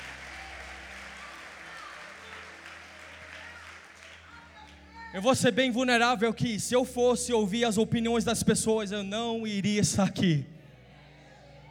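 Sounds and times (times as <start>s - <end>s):
audience applause: 0.0s - 4.8s
speech: 5.1s - 10.5s.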